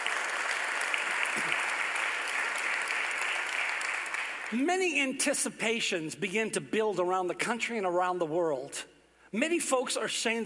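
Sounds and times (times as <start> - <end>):
audience hand clapping: 0.0 - 4.6
speech: 4.5 - 10.4.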